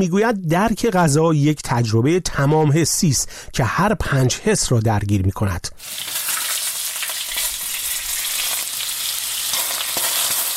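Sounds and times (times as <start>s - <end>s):
speech: 0.0s - 6.2s
food frying in a hot pan: 5.8s - 10.5s.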